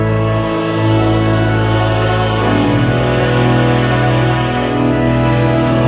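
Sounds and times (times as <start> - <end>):
person singing: 0.1 - 5.8.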